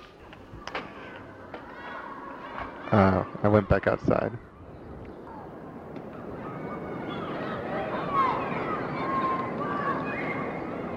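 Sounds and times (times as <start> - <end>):
outdoor street ambience in New York: 0.0 - 10.9
speech: 2.9 - 4.5.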